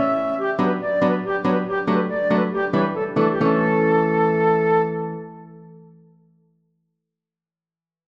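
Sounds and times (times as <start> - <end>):
Romanian folk dance for flute and guitar: 0.0 - 5.6.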